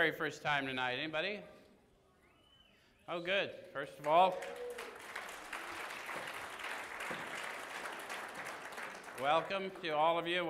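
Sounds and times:
speech: 0.0 - 1.6, 3.1 - 4.8, 9.2 - 10.4
faint applause from a meeting group welcoming newcomers: 4.0 - 10.4.

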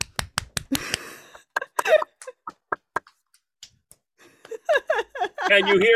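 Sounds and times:
hand clapping: 0.0 - 5.9
laughter: 0.7 - 3.2, 4.3 - 5.9
speech: 5.5 - 5.9.

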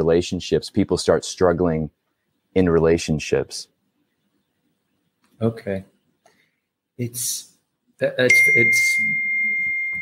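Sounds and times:
speech: 0.0 - 3.7, 5.4 - 5.9, 7.0 - 9.3
phone notification chime: 8.3 - 9.9.

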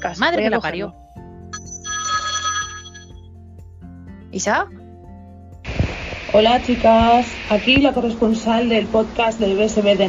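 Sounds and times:
speech: 0.0 - 1.0, 4.4 - 4.8, 6.3 - 10.0
telephone ringing with an electronic ringtone: 1.6 - 3.2.

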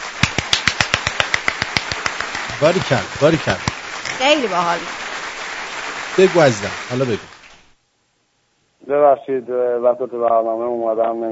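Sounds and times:
one person clapping hands for Yasaman: 0.0 - 7.6
speech: 2.6 - 5.0, 6.2 - 7.3, 8.9 - 11.3.

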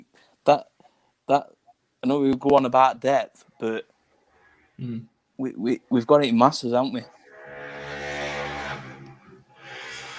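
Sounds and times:
speech: 0.4 - 0.7, 1.3 - 3.9, 4.8 - 7.2
motorbike engine driving past: 7.1 - 10.1.

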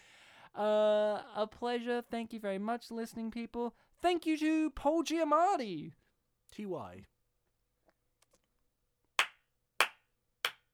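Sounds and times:
speech: 0.6 - 7.1
solemn hand clap: 9.2 - 10.7.

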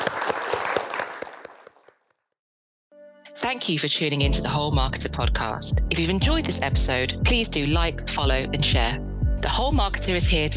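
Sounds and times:
audience applause: 0.0 - 2.0
speech: 3.4 - 10.5.

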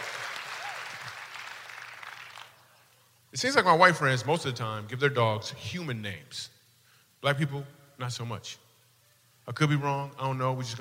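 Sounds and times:
audience applause: 0.0 - 2.6
speech: 3.3 - 6.6, 7.2 - 8.6, 9.5 - 10.7.

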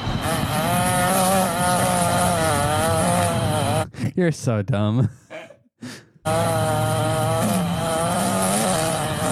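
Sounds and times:
weed whacker with small two-stroke engine running: 0.2 - 3.9, 6.3 - 9.3
speech: 4.2 - 5.2, 6.2 - 6.6.

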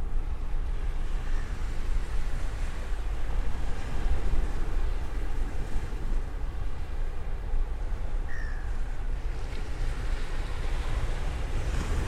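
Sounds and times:
waves washing on the beach: 0.0 - 12.0
faint bird chirps: 8.3 - 8.8.

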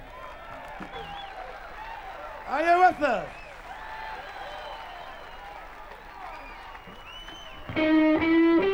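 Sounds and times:
audience clapping to welcome a blues performer: 0.0 - 8.6
speech: 2.5 - 3.4.

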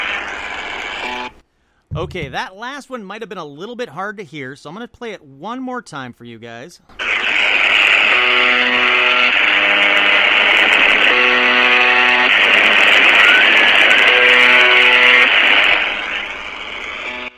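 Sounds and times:
speech: 2.0 - 7.0
harsh radio static: 7.0 - 17.3
loud buzzing radio tone: 7.0 - 17.3
faint woman's scream: 13.0 - 14.9.

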